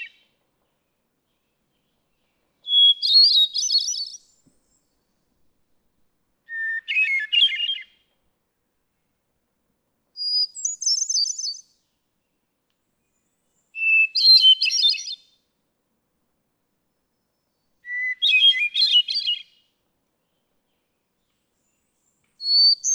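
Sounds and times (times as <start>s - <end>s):
hermit thrush singing: 1.3s - 5.0s, 6.5s - 8.0s, 10.2s - 11.8s, 13.8s - 15.3s, 17.2s - 19.6s, 22.4s - 22.9s.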